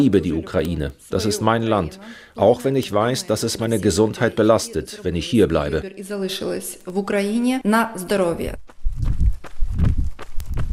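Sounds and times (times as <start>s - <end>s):
speech: 0.0s - 8.7s
footsteps of a slow jog on an asphalt forest path: 8.6s - 10.7s.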